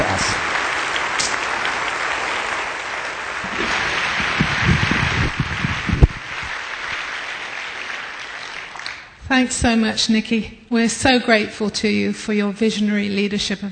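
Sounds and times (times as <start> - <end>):
audience applause welcoming a speaker to the stage: 0.0 - 9.2
speech: 9.4 - 13.7.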